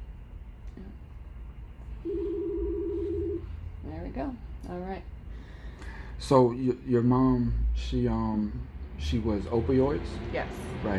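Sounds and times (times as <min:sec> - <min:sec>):
phone chirp: 0:02.1 - 0:03.5
speech: 0:06.2 - 0:10.9.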